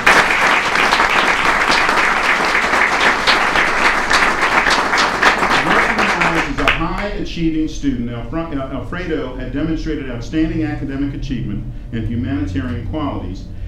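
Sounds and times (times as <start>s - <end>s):
audience applause: 0.0s - 7.1s
speech: 7.4s - 13.6s.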